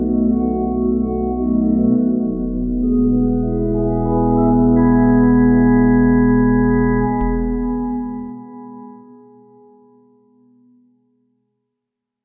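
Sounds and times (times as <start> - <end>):
organ accompaniment track: 0.1 - 8.3.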